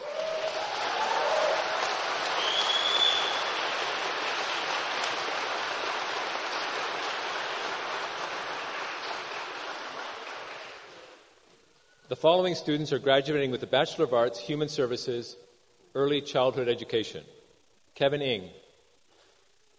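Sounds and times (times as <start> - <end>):
crowd applauding at a graduation ceremony: 0.0 - 11.3
speech: 12.1 - 17.4, 18.0 - 18.6.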